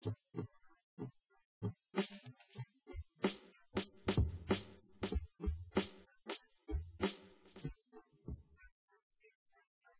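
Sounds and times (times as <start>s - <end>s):
drums: 1.6s - 2.3s, 3.0s - 8.4s.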